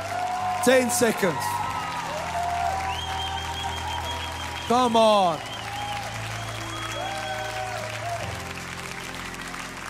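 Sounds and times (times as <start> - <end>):
audience applauding in praise: 0.0 - 9.8
speech: 0.6 - 1.6, 4.7 - 5.5
whistles: 2.8 - 7.3.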